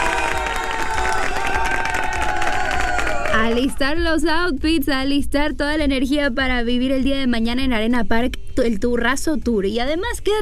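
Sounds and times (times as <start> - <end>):
applause: 0.0 - 3.8
speech: 3.4 - 10.4.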